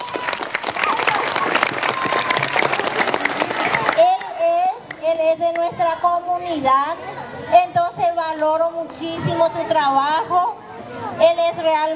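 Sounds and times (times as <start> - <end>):
audience applause: 0.0 - 5.1
speech: 6.4 - 10.6, 11.2 - 11.9.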